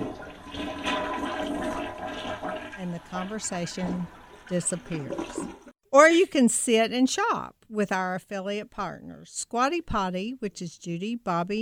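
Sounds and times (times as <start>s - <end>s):
toilet flushing: 0.0s - 5.8s
speech: 2.8s - 11.5s.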